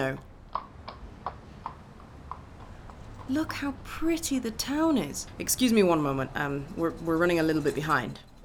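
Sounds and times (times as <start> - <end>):
speech: 0.0 - 0.3, 3.3 - 8.3
horse hooves clip-clopping pulling a carriage: 0.5 - 3.6.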